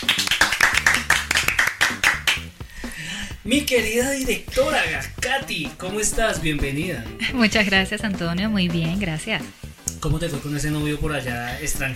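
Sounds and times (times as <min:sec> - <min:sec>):
audience applause: 0:00.0 - 0:02.4
speech: 0:03.4 - 0:11.9.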